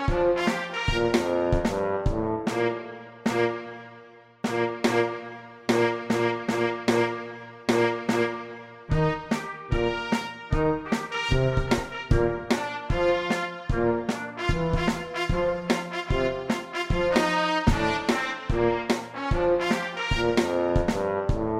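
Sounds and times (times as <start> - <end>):
drum kit: 0.0 - 3.7, 4.4 - 21.5
trumpet: 0.0 - 21.5
tuba: 0.0 - 21.5.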